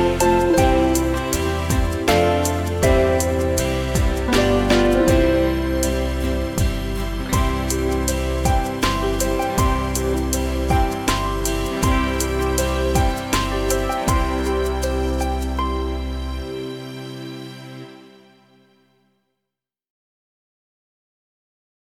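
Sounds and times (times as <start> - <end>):
bongos playing along: 0.0 - 15.6.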